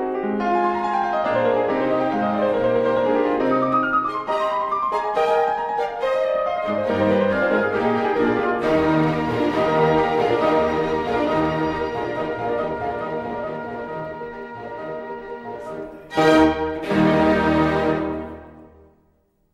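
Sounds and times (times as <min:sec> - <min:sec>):
violin concerto: 0:00.1 - 0:18.8.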